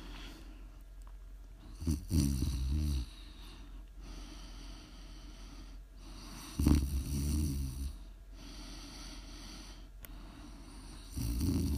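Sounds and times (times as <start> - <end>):
snoring and heavy breathing: 1.7 - 3.3, 6.2 - 8.1, 10.8 - 11.7.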